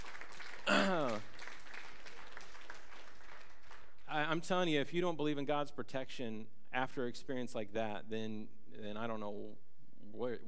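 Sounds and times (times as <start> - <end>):
church congregation clapping during a sermon: 0.0 - 4.5
speech: 4.3 - 10.4.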